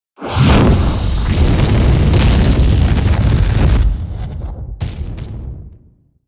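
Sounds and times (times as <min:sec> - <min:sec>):
fire element spell effect: 0:00.2 - 0:04.4.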